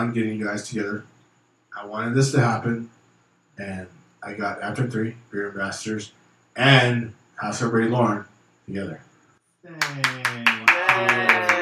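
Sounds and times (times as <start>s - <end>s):
speech: 0.0s - 1.2s, 1.8s - 3.0s, 3.6s - 11.2s
clapping: 9.8s - 11.5s.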